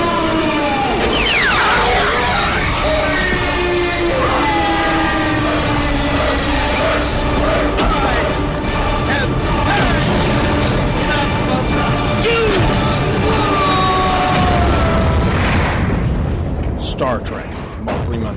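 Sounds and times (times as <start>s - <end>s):
Enterprise starship weapons fire and explosions under attack in Star Trek: 0.1s - 18.3s
electronic zaps and whines: 1.0s - 6.8s.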